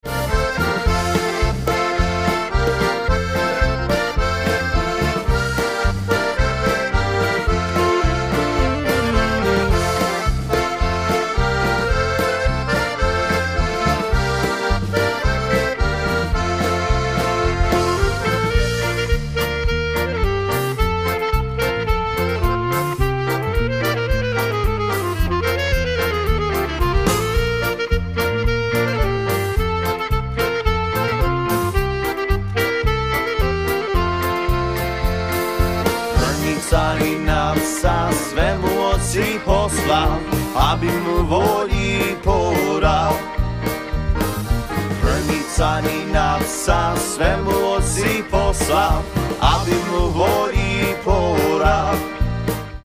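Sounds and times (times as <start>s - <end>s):
polka music: 0.0s - 52.8s.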